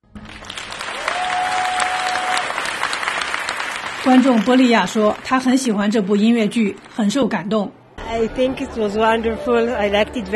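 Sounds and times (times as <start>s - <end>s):
prolonged audience applause: 0.0s - 7.0s
speech: 4.0s - 10.3s.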